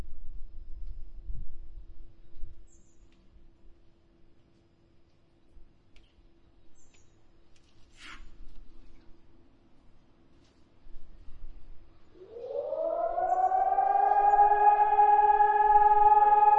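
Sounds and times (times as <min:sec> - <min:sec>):
siren test in Prague: 0:12.2 - 0:16.5.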